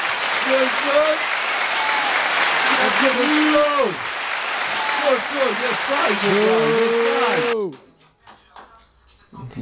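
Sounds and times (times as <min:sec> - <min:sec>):
audience applause: 0:00.0 - 0:07.6
voices cheering and whooping: 0:00.0 - 0:07.6.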